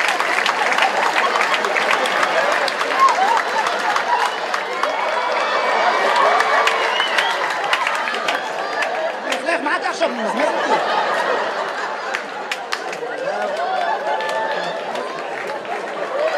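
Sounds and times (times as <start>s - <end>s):
audience applause: 0.0s - 16.3s
laughter: 0.0s - 16.3s.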